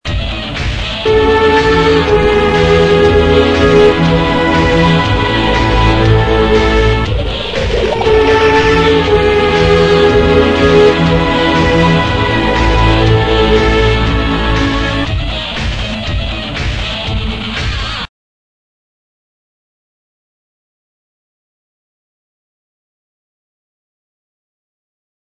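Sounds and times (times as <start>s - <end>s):
song: 0.4s - 17.4s.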